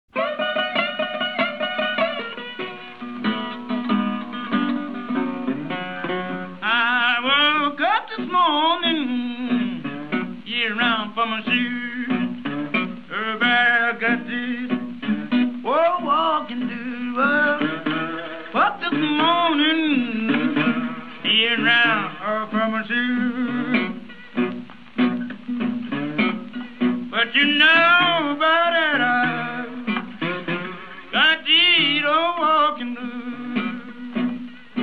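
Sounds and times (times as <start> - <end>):
blues music: 0.1 - 34.8.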